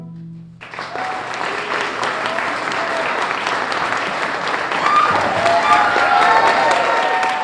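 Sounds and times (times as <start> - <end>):
audience cheering: 0.6 - 7.4.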